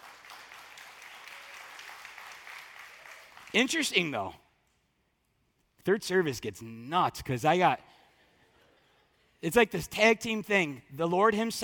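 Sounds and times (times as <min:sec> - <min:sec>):
audience applause: 0:00.0 - 0:03.6
speech: 0:03.5 - 0:04.4, 0:05.8 - 0:08.0, 0:09.4 - 0:11.6.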